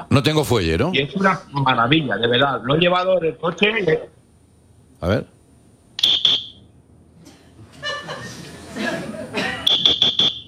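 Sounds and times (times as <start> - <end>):
speech: 0.0 - 4.2, 5.0 - 5.4
whistle gadget blown: 6.0 - 6.6, 9.6 - 10.4
laughter: 7.6 - 10.0.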